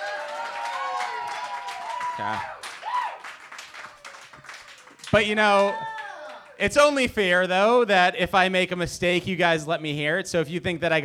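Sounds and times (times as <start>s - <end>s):
crowd cheering: 0.0s - 7.4s
speech: 2.2s - 2.6s, 5.1s - 5.9s, 6.6s - 11.0s.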